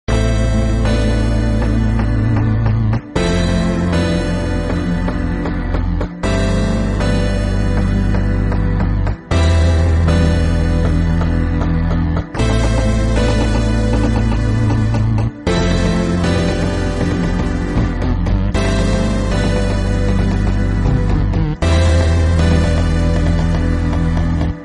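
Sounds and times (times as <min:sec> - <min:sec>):
instrumental background music: 0:00.0 - 0:24.6.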